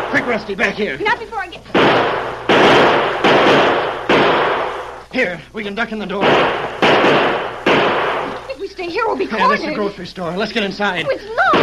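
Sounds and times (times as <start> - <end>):
speech: 0.2 - 3.7, 5.1 - 7.2, 8.8 - 11.6
gunshots in radio drama: 1.7 - 5.1, 6.1 - 8.5
laughter: 9.0 - 11.6.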